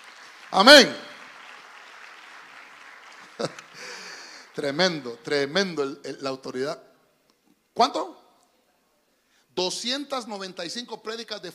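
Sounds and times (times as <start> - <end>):
audience applause: 0.0 - 5.4
speech: 0.5 - 1.1, 3.4 - 3.6, 4.6 - 6.9, 7.8 - 8.2, 9.6 - 11.5
laughter: 3.2 - 4.3.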